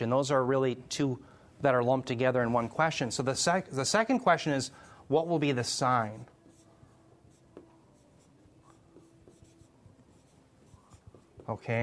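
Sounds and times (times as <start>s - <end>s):
speech: 0.0s - 6.3s, 11.5s - 11.8s
pen scratching during handwriting for an audience: 6.1s - 11.6s.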